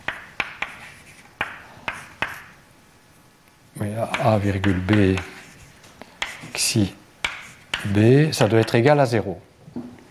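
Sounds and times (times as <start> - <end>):
writing strokes as vector components are written down: 0.0 - 2.5, 4.0 - 8.8
quiet hiss: 0.0 - 10.0
speech: 3.8 - 5.3, 6.6 - 7.0, 7.8 - 9.9.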